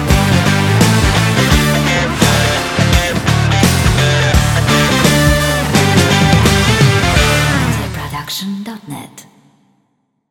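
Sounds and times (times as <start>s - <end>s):
powerful energetic indie funk rock music: 0.0s - 8.0s.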